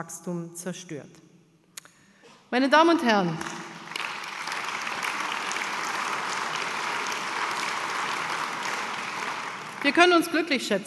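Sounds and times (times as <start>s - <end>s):
speech: 0.0s - 1.2s, 2.5s - 3.6s, 9.8s - 10.8s
applause in a hall during a speech: 3.4s - 10.7s.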